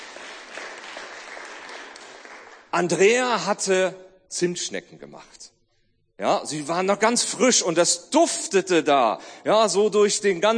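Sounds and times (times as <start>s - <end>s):
audience clapping for a children's ministry helper at a gathering: 0.0s - 3.0s
speech: 2.8s - 5.6s, 6.2s - 10.5s.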